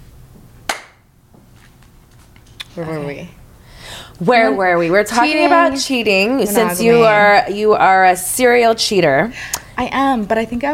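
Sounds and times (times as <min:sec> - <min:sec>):
low hum: 0:00.0 - 0:10.7
hand clap to sync recording: 0:00.7 - 0:01.0
speech: 0:02.8 - 0:03.4, 0:04.2 - 0:10.7.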